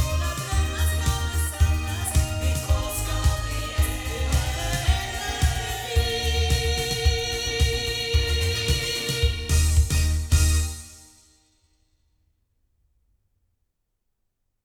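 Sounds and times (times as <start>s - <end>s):
loudspeaker sound recorded with microphones: 0.0s - 10.7s.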